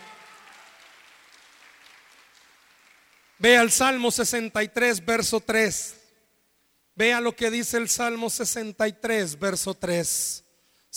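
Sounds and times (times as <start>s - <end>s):
audience applause: 0.0s - 3.3s
speech: 3.4s - 6.0s, 7.0s - 10.9s.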